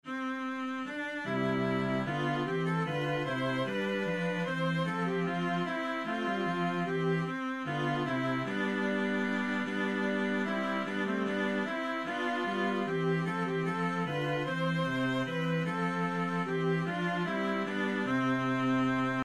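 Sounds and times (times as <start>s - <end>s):
viola playing a minuet: 0.0s - 19.2s.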